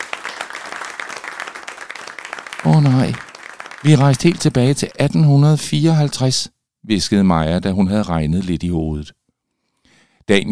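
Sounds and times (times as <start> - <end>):
enthusiastic crowd applause: 0.0 - 5.3
speech: 3.8 - 9.2, 10.3 - 10.4.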